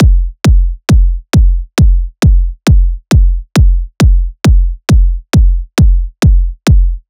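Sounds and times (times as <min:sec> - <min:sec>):
techno kick drum loop at 135 bpm: 0:00.0 - 0:07.0.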